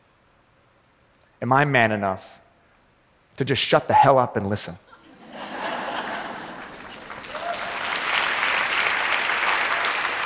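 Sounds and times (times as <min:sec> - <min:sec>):
speech: 0:01.4 - 0:02.4, 0:03.4 - 0:05.5
people chuckling: 0:04.9 - 0:07.0
audience applauding: 0:05.7 - 0:10.2.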